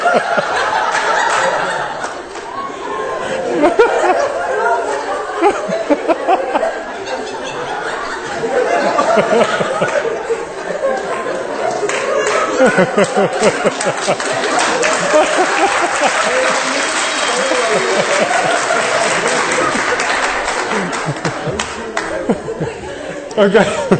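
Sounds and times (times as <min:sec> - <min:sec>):
audience clapping: 0:00.0 - 0:02.7, 0:08.9 - 0:10.2, 0:10.8 - 0:23.4
crowd laughter and chuckles: 0:00.0 - 0:23.9
speech: 0:00.2 - 0:00.7, 0:09.2 - 0:10.0, 0:12.6 - 0:16.8, 0:17.4 - 0:20.0, 0:23.4 - 0:23.9.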